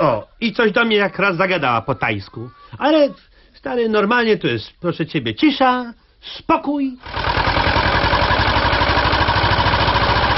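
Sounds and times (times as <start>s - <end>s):
speech: 0.1s - 7.4s
motorboat with tractor engine idling: 7.1s - 10.3s.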